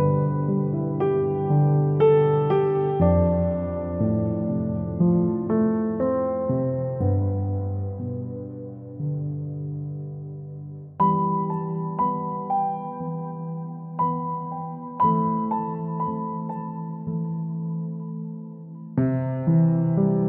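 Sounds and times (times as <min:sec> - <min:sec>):
ocean piano music: 0:00.0 - 0:20.2.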